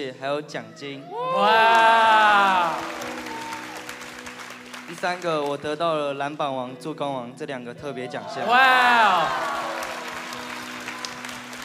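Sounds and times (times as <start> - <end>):
speech: 0.0 - 3.2, 4.9 - 9.6
audience applause: 1.3 - 5.6, 8.4 - 11.6.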